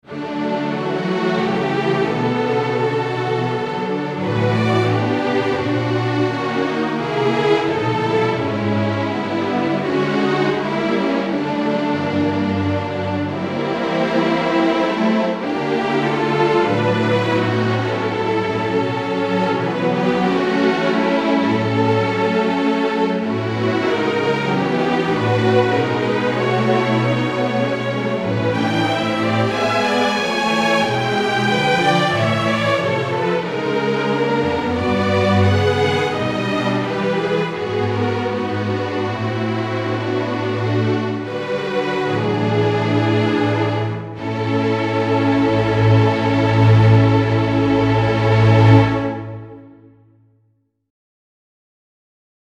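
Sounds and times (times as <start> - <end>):
string ensemble: 0.0 - 49.9.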